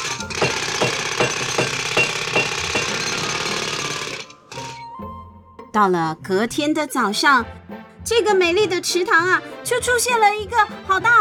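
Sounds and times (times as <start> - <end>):
hammering on wood: 0.3 - 4.0
speech: 5.8 - 11.1.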